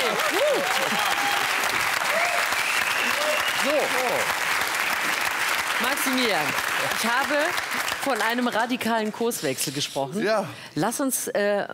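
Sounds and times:
audience applause: 0.0s - 8.8s
faint whoops: 0.1s - 3.6s
speech: 6.0s - 11.7s.

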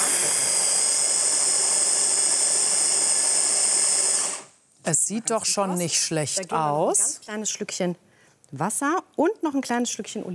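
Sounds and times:
blender mixing capers, tuna and anchovies: 0.0s - 4.6s
speech: 4.9s - 10.3s.

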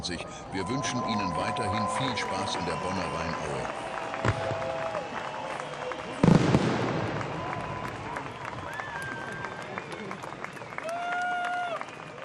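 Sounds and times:
speech: 0.0s - 5.0s
whistles: 0.6s - 12.1s
large outdoor crowd clapping and cheering after fireworks: 0.6s - 12.2s
firework bang: 6.2s - 8.0s.

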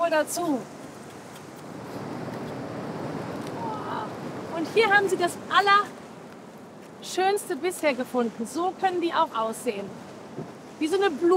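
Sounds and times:
speech: 0.1s - 0.8s, 4.6s - 6.0s, 7.0s - 11.3s
waves surging against rocks on shore: 1.7s - 6.2s, 7.0s - 11.3s.

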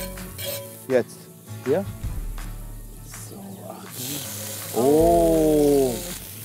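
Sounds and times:
meat sizzling in a pan beside onions: 0.0s - 6.4s
speech: 0.9s - 2.0s, 4.0s - 5.5s
person exclaiming: 4.8s - 6.2s.

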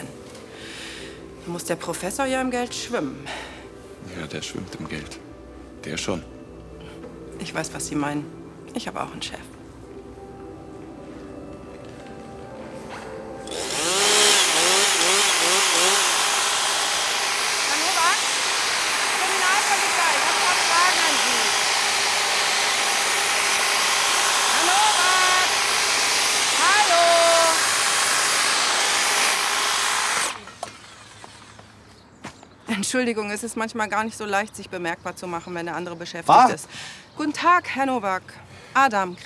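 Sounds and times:
speech: 1.5s - 6.4s, 7.4s - 9.5s, 32.9s - 39.2s
electric hedge trimmer cutting a hedge: 13.4s - 31.8s.

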